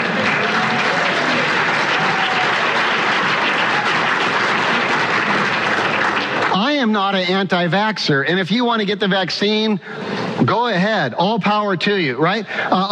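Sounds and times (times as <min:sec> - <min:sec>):
audience applause: 0:00.0 - 0:08.2
speech: 0:07.0 - 0:12.9.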